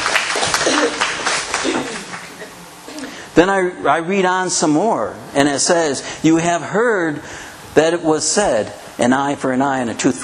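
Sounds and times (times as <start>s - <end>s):
round of applause for the volunteers: 0.0s - 2.4s
speech: 3.4s - 10.2s.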